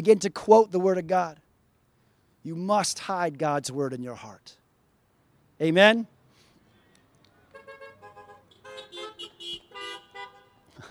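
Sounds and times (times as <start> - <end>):
speech: 0.0 - 1.4, 2.4 - 4.6, 5.6 - 6.2
car horns honking: 7.5 - 10.8.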